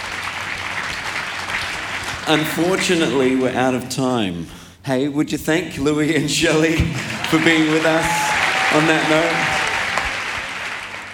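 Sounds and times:
audience clapping: 0.0 - 3.5, 6.8 - 11.1
speech: 2.3 - 9.6.

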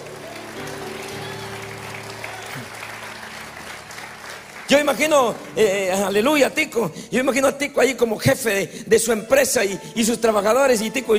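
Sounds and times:
audience applauding: 0.0 - 6.2
speech: 4.7 - 11.1.

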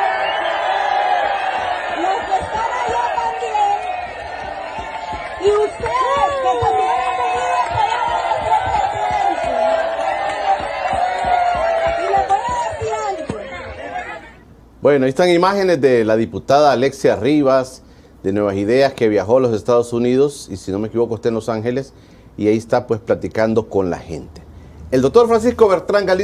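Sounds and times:
crowd shouting in support of the president: 0.0 - 14.5
speech: 14.8 - 26.2.

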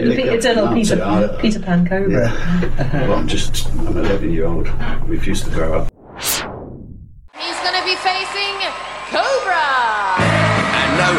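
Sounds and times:
speech: 0.0 - 5.9
brief decaying sound: 6.0 - 7.3
loud crowd cheering whooping and shouting: 7.3 - 11.1.

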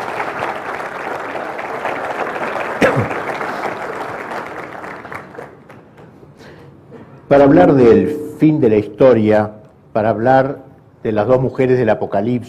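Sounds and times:
loud audience applause: 0.0 - 6.0
speech: 3.0 - 3.2, 7.3 - 12.4.

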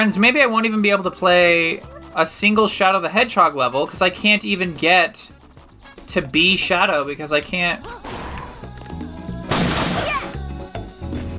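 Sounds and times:
speech: 0.0 - 5.4, 6.1 - 8.2
video game boxes being smashed: 9.5 - 10.3.

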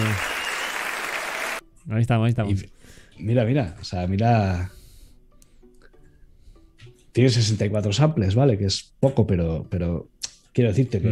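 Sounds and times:
applause: 0.0 - 1.6
speech: 1.9 - 4.8, 7.2 - 11.0.

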